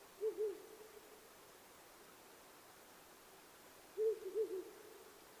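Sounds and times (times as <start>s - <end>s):
owl giving low soft hoots: 0.2s - 1.3s, 4.0s - 5.2s.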